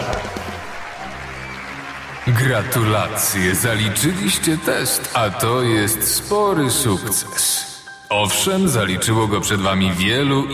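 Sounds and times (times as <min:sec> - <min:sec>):
applause: 0:00.0 - 0:06.5
speech: 0:02.3 - 0:10.5.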